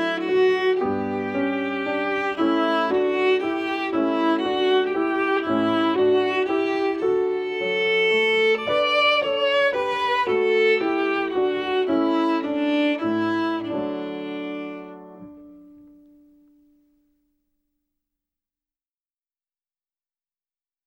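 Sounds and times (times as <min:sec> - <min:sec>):
French folk song on violin: 0:00.0 - 0:16.4.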